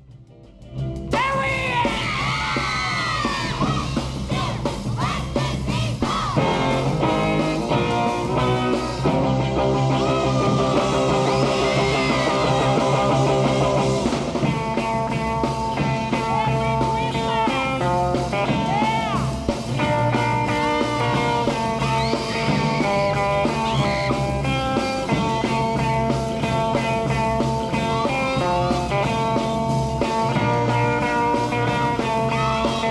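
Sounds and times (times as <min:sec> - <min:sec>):
lively band recording of Christmas song: 0:00.0 - 0:32.8
girls yelling, whooping and cheering excitedly: 0:01.8 - 0:06.7, 0:10.0 - 0:13.2, 0:21.0 - 0:24.6.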